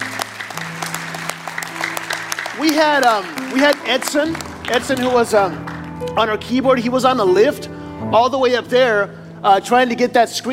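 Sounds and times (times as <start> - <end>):
round of applause: 0.0 - 6.3
speech: 2.6 - 10.5.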